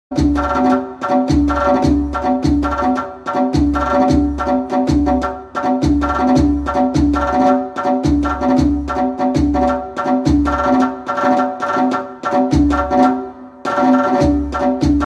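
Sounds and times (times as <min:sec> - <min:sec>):
percussion: 0:00.1 - 0:15.0.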